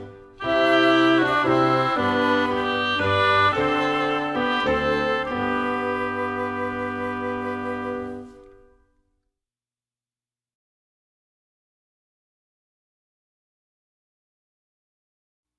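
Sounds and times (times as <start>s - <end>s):
instrumental music: 0.0s - 9.0s.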